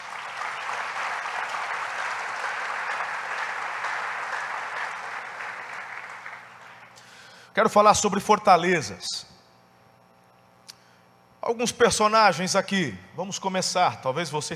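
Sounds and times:
audience applause: 0.0 - 7.0
speech: 7.6 - 9.3, 11.5 - 14.5.

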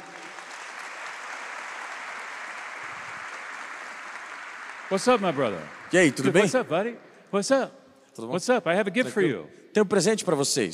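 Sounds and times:
crowd applause for volunteers: 0.0 - 7.1
speech: 4.9 - 10.7.

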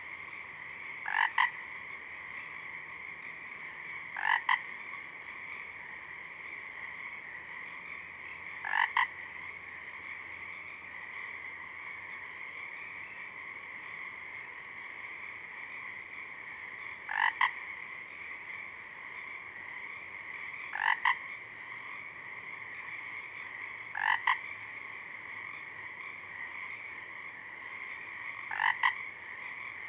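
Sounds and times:
continuous background frog chorus: 0.0 - 29.8
Pacific chorus frog giving two-note ribbits: 1.0 - 1.6, 4.2 - 4.7, 8.6 - 9.2, 17.1 - 17.6, 20.7 - 21.3, 23.9 - 24.5, 27.8 - 29.8.

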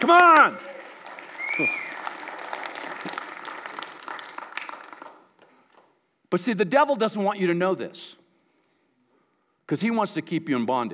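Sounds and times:
speech: 0.0 - 0.8, 1.6 - 1.8, 6.3 - 8.2, 9.7 - 10.9
audience applause: 0.0 - 5.8
whoops: 0.1 - 2.3
rising whistle: 1.4 - 2.1.

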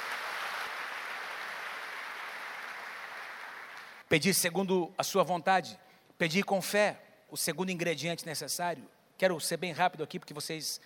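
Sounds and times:
audience applauding: 0.0 - 4.1
speech: 4.1 - 10.8.

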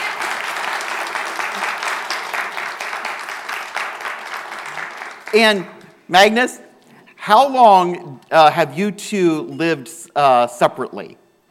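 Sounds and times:
audience applause: 0.0 - 5.6
speech: 5.3 - 6.6, 7.2 - 11.2.

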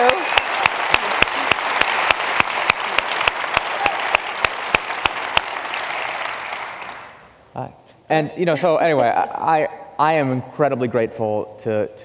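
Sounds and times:
conference audience applause: 0.0 - 7.2
speech: 8.1 - 12.0.

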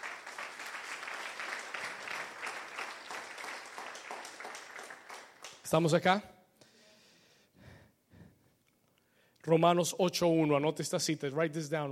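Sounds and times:
audience applauding: 0.0 - 5.9
speech: 5.7 - 6.3, 9.5 - 11.8.

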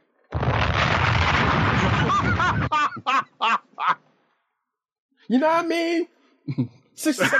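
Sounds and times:
bomb explosion sound effect: 0.3 - 2.8
laugh-like vocal bursts: 1.3 - 4.0
speech: 5.3 - 7.3.

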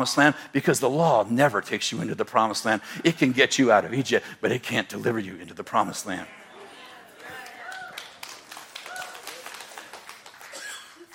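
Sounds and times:
speech: 0.0 - 6.4
audience clapping: 7.2 - 11.1.

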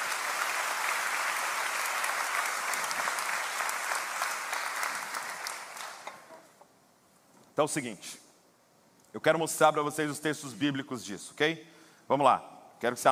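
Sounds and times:
audience applause: 0.0 - 6.3
speech: 7.6 - 8.2, 9.2 - 13.0.

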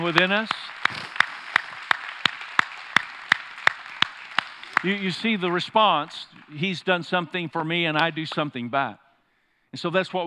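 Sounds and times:
speech: 0.0 - 1.1, 4.8 - 9.0, 9.7 - 10.2
audience hand clapping: 0.0 - 7.2.

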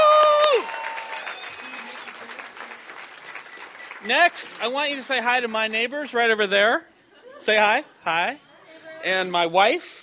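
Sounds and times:
loud audience applause: 0.0 - 5.5
speech: 4.1 - 8.4, 9.0 - 10.0.

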